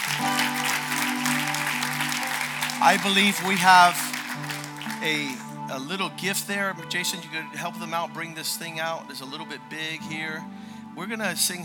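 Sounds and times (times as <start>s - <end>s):
church congregation applause: 0.0s - 5.7s
speech: 2.8s - 11.6s.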